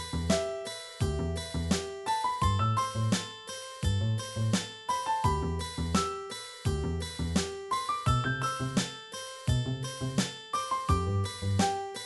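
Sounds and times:
sequenced acoustic jazz remix on Super Nintendo: 0.0 - 12.0.

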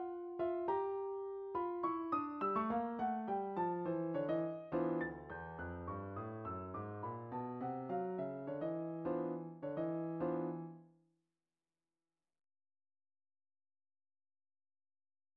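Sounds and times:
short midi piano pieces: 0.0 - 10.8.

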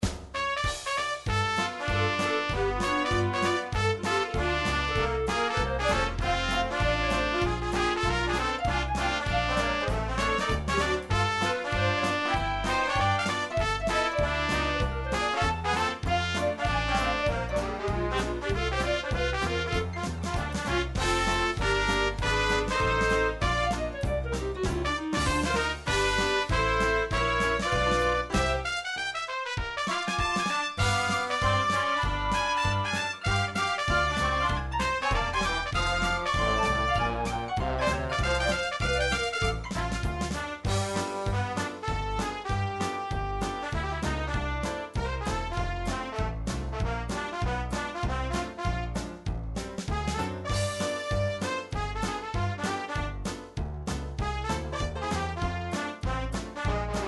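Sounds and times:
MIDI oldies stomp: 0.0 - 57.0.

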